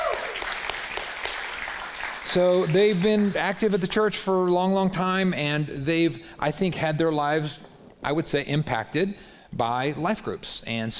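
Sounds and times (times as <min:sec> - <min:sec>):
audience clapping: 0:00.0 - 0:04.1
speech: 0:02.3 - 0:10.9.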